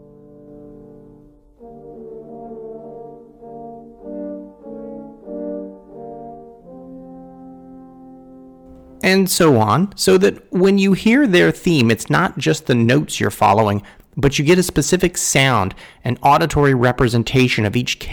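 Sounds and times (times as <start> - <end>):
French horns playing: 1.6 - 9.8
speech: 9.0 - 18.1.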